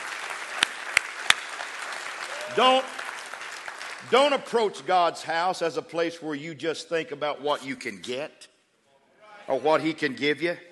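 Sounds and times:
audience clapping: 0:00.0 - 0:05.1
speech: 0:02.6 - 0:03.0, 0:04.0 - 0:08.5, 0:09.5 - 0:10.6.

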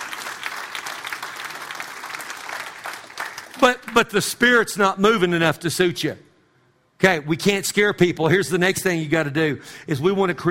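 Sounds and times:
audience clapping: 0:00.0 - 0:04.5
speech: 0:03.6 - 0:06.3, 0:07.0 - 0:10.5.

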